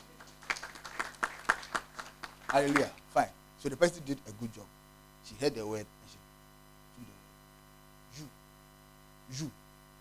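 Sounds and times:
scattered handclaps from an audience: 0:00.0 - 0:03.1
speech: 0:02.5 - 0:06.2, 0:09.3 - 0:09.6.

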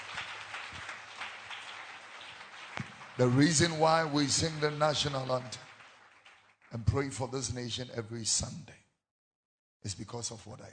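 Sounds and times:
crowd clapping hands: 0:00.0 - 0:07.6
speech: 0:03.2 - 0:05.6, 0:06.7 - 0:08.8, 0:09.8 - 0:10.7.

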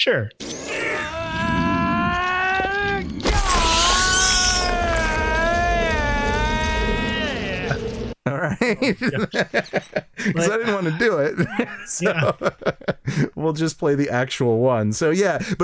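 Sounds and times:
speech: 0:00.0 - 0:00.5, 0:08.4 - 0:15.6
loud drawn-out shriek from a film soundtrack: 0:00.4 - 0:08.2
laughter: 0:07.6 - 0:13.3.

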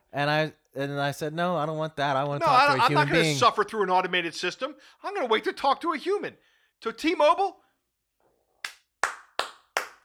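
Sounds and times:
speech: 0:00.1 - 0:07.6
hand clapping: 0:08.6 - 0:10.0.

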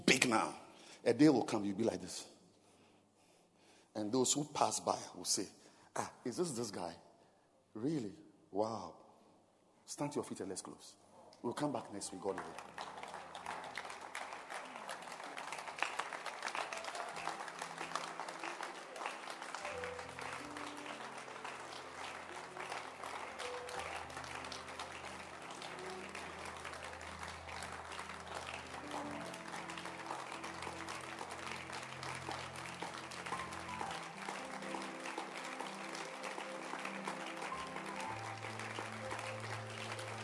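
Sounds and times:
speech: 0:00.2 - 0:02.3, 0:04.0 - 0:07.0, 0:07.7 - 0:09.0, 0:09.9 - 0:12.9
church audience clapping: 0:11.7 - 0:40.2.

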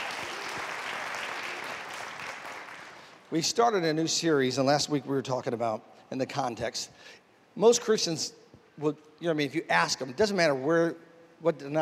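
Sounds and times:
audience clapping hands: 0:00.0 - 0:03.3
speech: 0:03.3 - 0:11.8.

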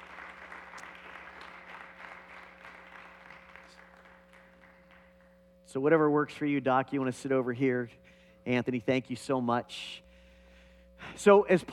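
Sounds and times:
audience applause welcoming guests on stage: 0:00.0 - 0:05.2
speech: 0:05.7 - 0:10.0, 0:11.0 - 0:11.7.

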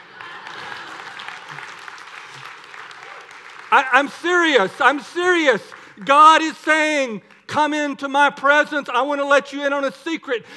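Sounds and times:
audience clapping: 0:00.0 - 0:08.0
speech: 0:03.7 - 0:10.5.

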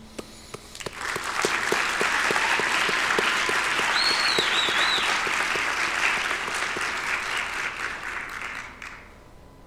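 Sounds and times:
audience applause: 0:00.8 - 0:09.1
faint whistles: 0:03.9 - 0:05.3.

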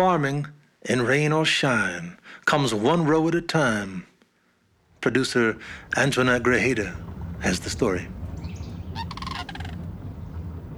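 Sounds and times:
speech: 0:00.0 - 0:04.1, 0:05.0 - 0:08.2
steady low rumble: 0:05.0 - 0:10.7
flock of cranes calling in marshes: 0:05.3 - 0:10.7.

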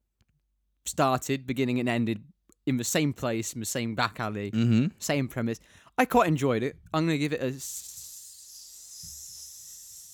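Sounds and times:
speech: 0:00.9 - 0:07.9
person hissing like a snake while thinking: 0:07.6 - 0:10.1.

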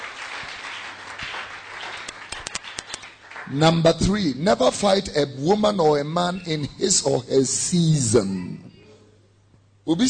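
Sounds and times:
crowd clapping hands: 0:00.0 - 0:03.9
speech: 0:03.5 - 0:08.7, 0:09.8 - 0:10.0.

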